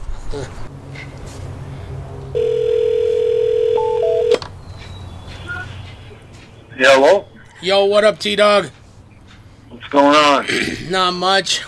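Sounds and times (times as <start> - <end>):
speech: 0.3 - 0.8, 6.8 - 8.8, 9.9 - 11.6
phone line dial tone: 2.4 - 4.4
phone keypad beeps: 3.8 - 4.4.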